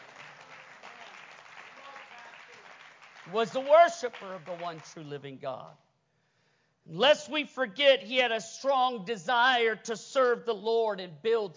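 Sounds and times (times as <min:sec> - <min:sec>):
audience clapping hands: 0:00.0 - 0:05.8
speech: 0:03.3 - 0:05.8, 0:06.9 - 0:11.5.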